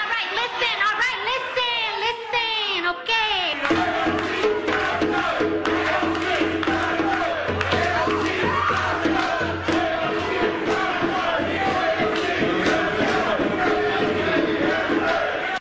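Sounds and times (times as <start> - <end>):
crowd shouting and chanting at an Alexandria Ocasio-Cortez town hall: 0.0 - 15.5
sharp percussive hits: 3.6 - 15.2.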